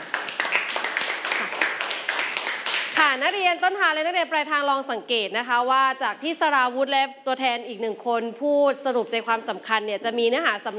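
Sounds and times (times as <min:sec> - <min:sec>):
applause: 0:00.0 - 0:03.4
speech: 0:03.2 - 0:10.7.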